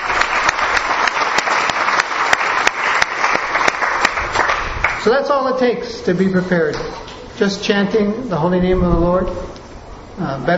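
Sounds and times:
audience applause: 0.0 - 5.0
speech: 5.0 - 9.6, 10.2 - 10.5.

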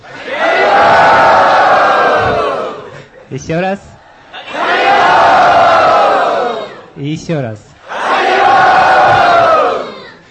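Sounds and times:
temple crowd shouting in unison to greet guests: 0.0 - 3.0, 4.3 - 6.9, 7.8 - 10.2
speech: 3.4 - 3.9, 7.1 - 7.7.

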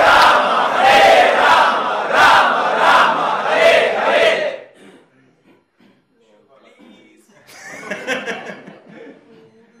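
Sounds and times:
crowd loudly chanting: 0.0 - 4.8
laughter: 7.4 - 9.7.

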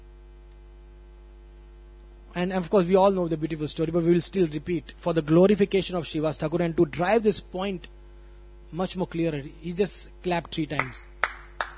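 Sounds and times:
speech: 2.4 - 8.0, 8.7 - 11.1
sharp hand claps: 10.8 - 11.7.

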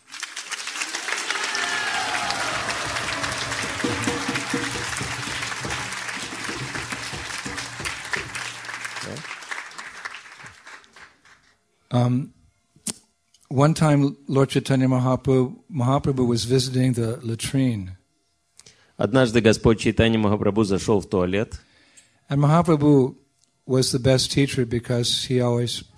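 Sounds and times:
audience applause: 0.0 - 11.5
speech: 12.0 - 12.4, 13.5 - 18.0, 19.0 - 21.7, 22.3 - 25.9.

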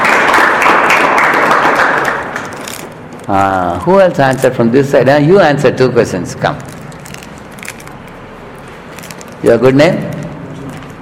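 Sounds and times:
audience applause: 0.0 - 2.6
speech: 3.3 - 6.8, 9.4 - 10.2.

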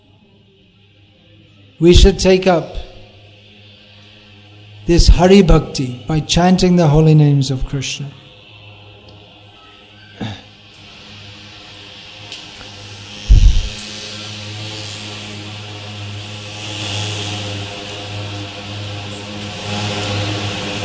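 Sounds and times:
speech: 1.8 - 2.9, 4.9 - 8.2
mosquito spraying fogger machine buzzing: 10.9 - 20.8.

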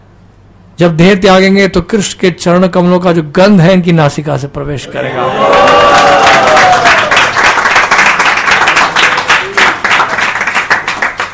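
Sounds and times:
speech: 0.8 - 6.1
audience applause: 5.2 - 11.3.

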